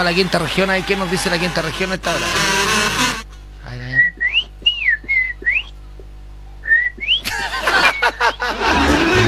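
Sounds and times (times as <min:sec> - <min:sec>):
speech: 0:00.0 - 0:02.7
person whistling imitation of a loica bird: 0:04.0 - 0:05.8, 0:06.6 - 0:08.2
laughter: 0:07.2 - 0:09.2.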